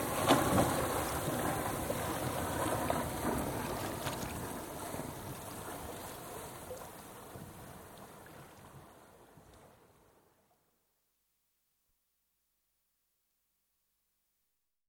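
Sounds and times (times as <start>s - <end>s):
sailing dinghy sailing past, recorded on shore: 0.0s - 10.2s.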